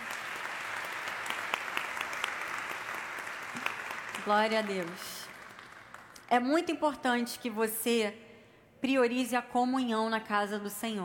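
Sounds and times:
audience applause: 0.0s - 6.2s
speech: 4.2s - 5.2s, 6.3s - 11.0s.

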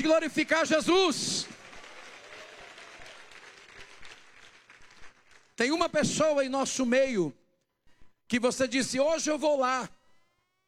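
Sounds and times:
speech: 0.0s - 1.4s, 5.6s - 7.4s, 8.3s - 10.0s
audience clapping: 0.0s - 6.0s.

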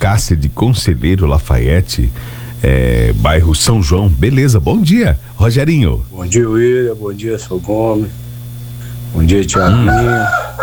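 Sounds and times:
speech: 0.1s - 8.2s, 9.1s - 10.6s
rooster crowing: 9.3s - 10.6s.

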